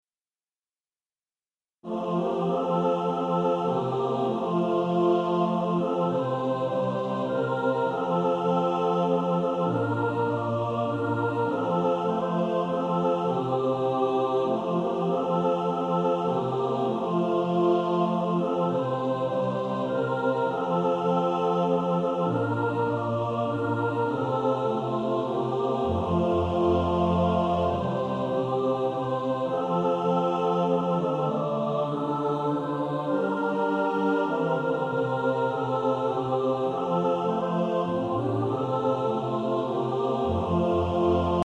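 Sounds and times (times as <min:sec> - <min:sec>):
hymn mix: 0:01.9 - 0:41.4.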